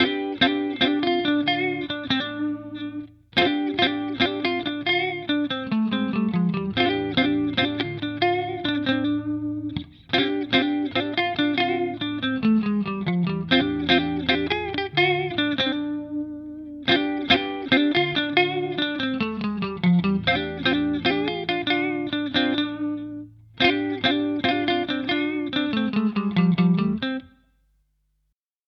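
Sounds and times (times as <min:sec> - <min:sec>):
Fender electric guitar played clean: 0:00.0 - 0:27.4.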